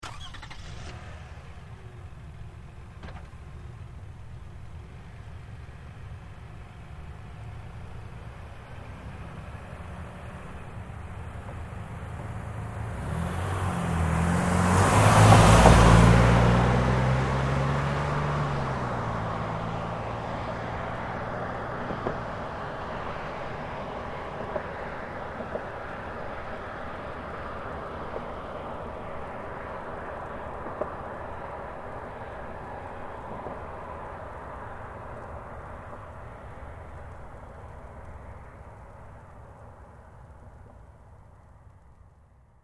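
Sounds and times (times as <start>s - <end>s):
Highlander car starting and driving away: 0.0s - 42.2s.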